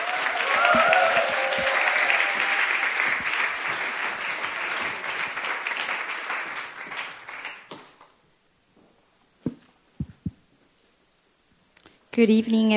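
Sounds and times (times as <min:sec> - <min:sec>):
audience applauding: 0:00.0 - 0:08.0
speech: 0:12.2 - 0:12.7.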